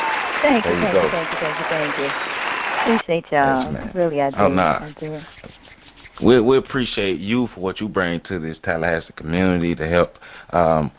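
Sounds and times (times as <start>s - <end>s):
studio audience applause: 0.0s - 3.0s
speech: 0.4s - 10.9s.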